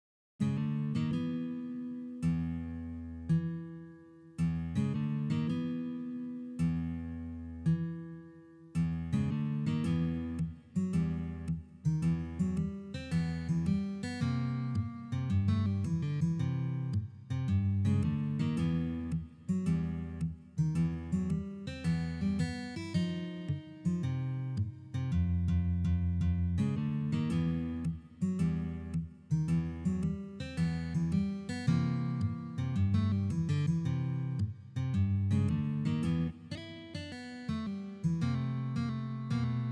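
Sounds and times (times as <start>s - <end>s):
guitar playing: 0.4s - 39.7s.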